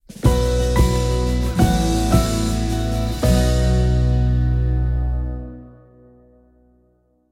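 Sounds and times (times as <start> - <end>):
battle victory music: 0.2 - 5.7.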